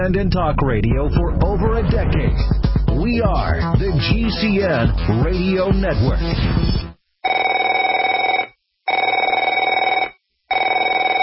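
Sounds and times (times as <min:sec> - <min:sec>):
speech: 0:00.0 - 0:06.8
telephone ringing: 0:07.2 - 0:11.2.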